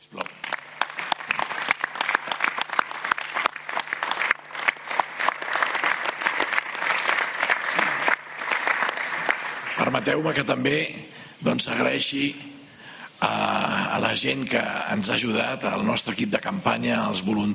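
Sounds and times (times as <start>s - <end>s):
crowd applause: 0.1s - 10.0s
speech: 10.0s - 12.6s, 13.2s - 17.5s.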